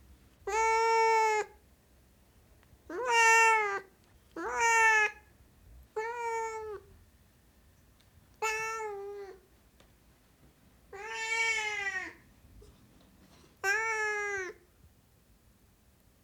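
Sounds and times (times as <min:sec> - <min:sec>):
Siamese cat meowing: 0:00.5 - 0:01.6, 0:02.9 - 0:05.2, 0:06.0 - 0:06.9, 0:08.4 - 0:09.4, 0:10.9 - 0:12.2, 0:13.6 - 0:14.6.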